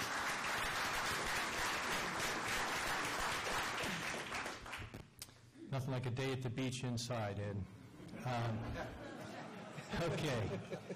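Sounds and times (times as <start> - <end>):
audience applause at a public meeting: 0.0 - 4.9
speech: 5.8 - 9.1, 9.9 - 10.9
laughter: 8.0 - 10.9.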